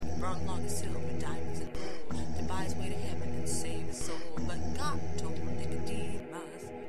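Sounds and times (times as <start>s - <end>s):
bass: 0.0s - 6.2s.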